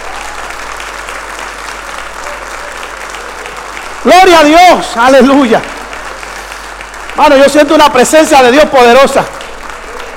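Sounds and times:
loud audience applause: 0.0 - 10.1
speech: 4.0 - 5.8, 7.2 - 9.4.

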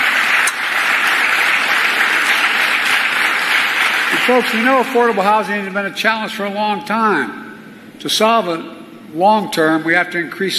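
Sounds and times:
crowd applause at campaign rally: 0.0 - 5.5
speech: 4.3 - 7.4, 8.0 - 10.5.

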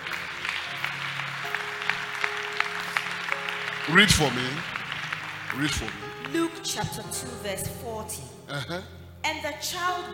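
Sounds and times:
crowd clapping: 0.0 - 7.4
speech: 3.9 - 4.7, 5.5 - 10.1.

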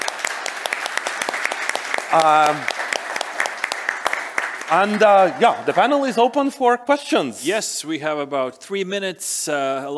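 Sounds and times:
audience applause for panelists: 0.0 - 6.3
speech: 2.1 - 2.8, 4.7 - 9.9.

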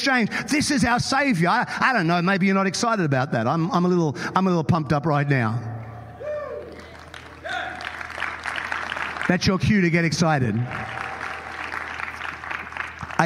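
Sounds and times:
speech: 0.0 - 5.7, 9.3 - 11.0
applause clapping: 6.6 - 13.2.

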